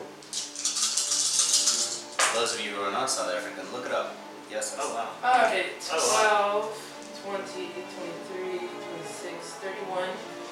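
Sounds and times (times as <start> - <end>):
handful of dice rolling: 0.3 - 2.3
speech: 2.4 - 10.4.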